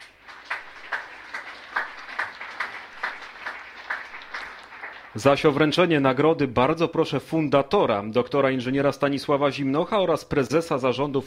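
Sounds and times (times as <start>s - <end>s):
audience applause: 0.0s - 5.9s
speech: 5.2s - 11.2s.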